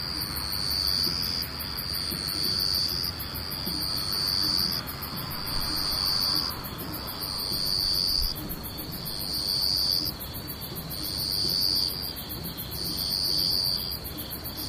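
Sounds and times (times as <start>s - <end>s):
insects trilling: 0.0s - 14.6s.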